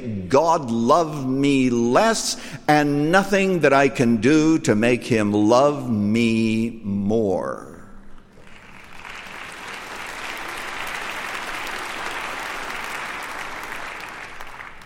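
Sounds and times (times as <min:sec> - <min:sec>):
speech: 0:00.0 - 0:07.7
audience clapping: 0:08.3 - 0:14.8.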